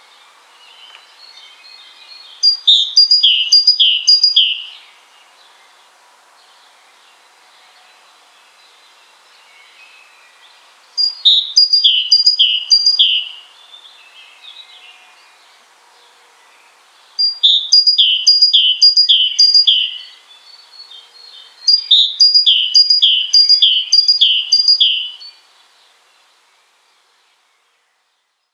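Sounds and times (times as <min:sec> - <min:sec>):
great tit song: 0:02.4 - 0:04.7, 0:11.0 - 0:13.2, 0:17.2 - 0:20.1, 0:21.6 - 0:25.3.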